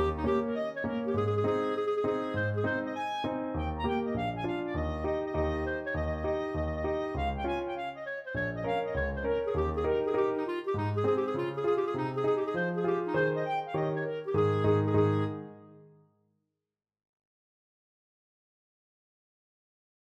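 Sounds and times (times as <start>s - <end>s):
trumpet hornpipe: 0.0s - 15.7s
clarinet: 0.0s - 16.0s.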